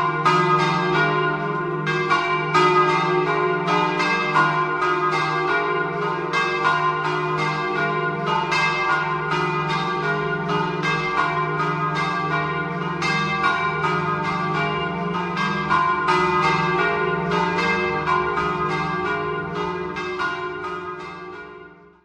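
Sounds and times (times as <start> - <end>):
bells ringing: 0.0 - 22.0.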